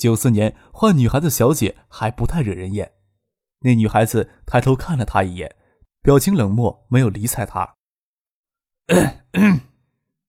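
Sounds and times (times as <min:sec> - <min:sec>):
speech: 0:00.0 - 0:03.0, 0:03.6 - 0:07.8, 0:08.9 - 0:09.7
person coughing: 0:08.9 - 0:09.8.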